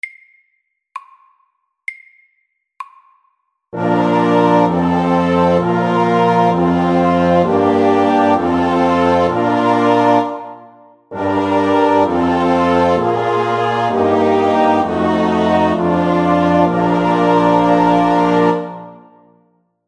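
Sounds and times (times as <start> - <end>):
chromatic chorale: 3.8 - 19.3.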